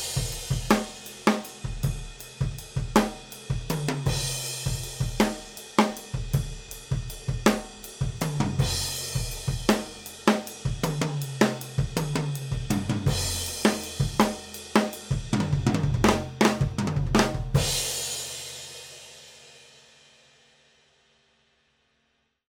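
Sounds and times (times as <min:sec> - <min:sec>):
drums through overhead microphones: 0:00.0 - 0:21.7.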